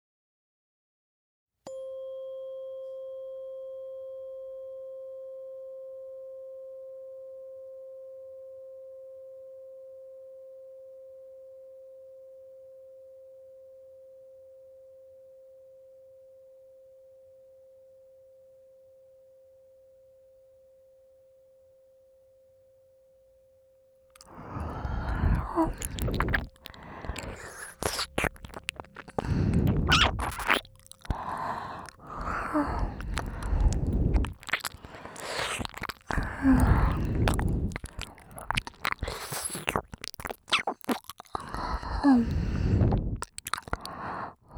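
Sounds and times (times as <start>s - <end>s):
ear licking: 24.2s - 44.5s.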